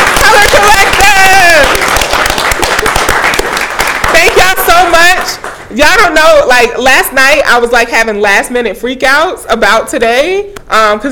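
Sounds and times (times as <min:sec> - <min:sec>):
crowd clapping: 0:00.0 - 0:05.7
speech: 0:05.8 - 0:11.0.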